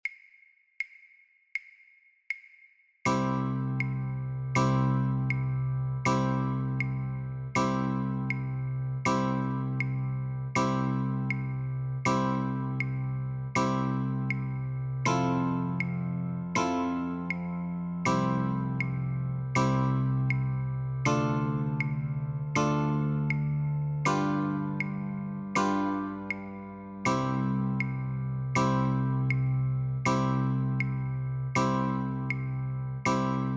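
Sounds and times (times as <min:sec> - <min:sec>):
guitar chords: 0:03.1 - 0:33.5.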